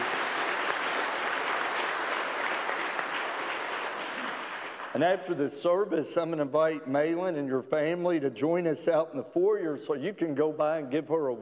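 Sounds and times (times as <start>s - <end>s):
audience applause: 0.0s - 5.2s
speech: 5.0s - 11.4s.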